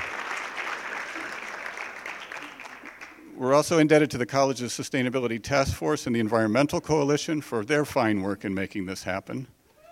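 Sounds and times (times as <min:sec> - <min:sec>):
audience applause: 0:00.0 - 0:03.2
speech: 0:03.4 - 0:09.6.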